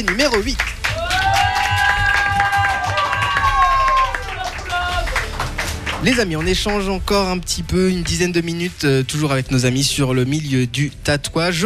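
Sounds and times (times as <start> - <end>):
speech: 0.0 - 0.8, 6.0 - 11.6
audience cheering: 0.0 - 7.0
audience applause: 0.0 - 8.5.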